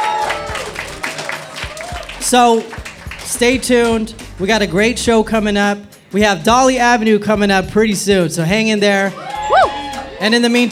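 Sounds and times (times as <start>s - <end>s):
audience applause: 0.0s - 4.3s, 9.2s - 10.7s
speech: 2.3s - 9.6s, 10.2s - 10.7s.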